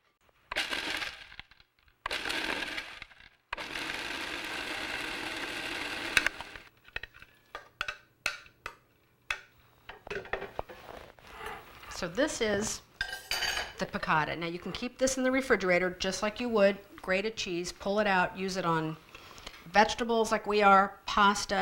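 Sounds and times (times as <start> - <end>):
food processor pulsing nuts and cheese: 0.5 - 6.7
speech: 12.0 - 12.9, 13.8 - 19.0, 19.7 - 21.5.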